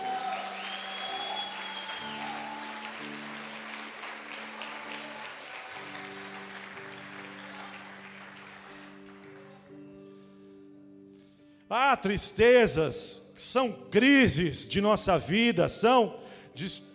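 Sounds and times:
audience applause: 0:00.0 - 0:09.9
speech: 0:11.7 - 0:16.9.

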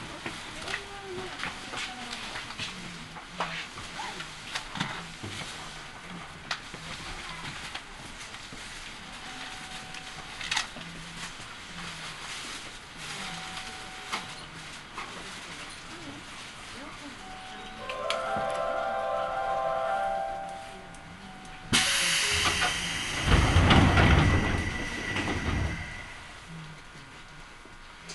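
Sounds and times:
Seibu Railway train rumble: 0:00.0 - 0:28.1
tonal whine as the train accelerates: 0:17.8 - 0:26.6.

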